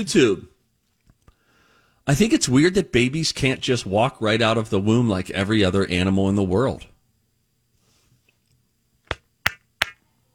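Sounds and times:
speech: 0.0s - 0.5s, 2.1s - 6.9s
hand claps: 9.1s - 10.0s.

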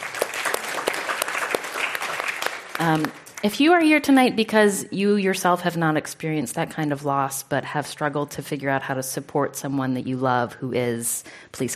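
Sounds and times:
audience clapping: 0.0s - 3.6s
speech: 2.8s - 11.7s.

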